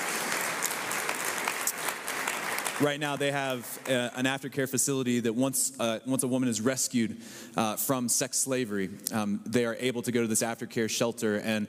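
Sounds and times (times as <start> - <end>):
audience clapping: 0.0 - 4.5
speech: 2.8 - 11.6.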